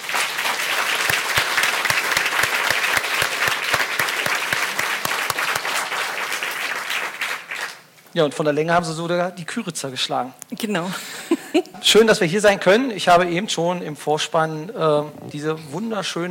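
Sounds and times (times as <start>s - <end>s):
audience applause: 0.0s - 7.9s
speech: 8.2s - 16.2s.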